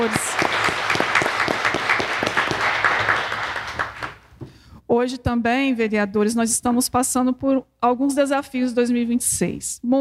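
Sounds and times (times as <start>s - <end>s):
speech: 0.0s - 0.3s, 5.0s - 10.0s
audience applause: 0.0s - 4.2s.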